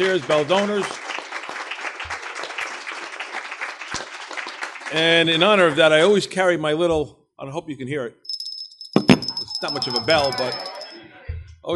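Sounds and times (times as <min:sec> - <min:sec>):
speech: 0:00.0 - 0:01.1, 0:04.9 - 0:08.2, 0:09.6 - 0:10.7
audience applause: 0:00.0 - 0:05.4.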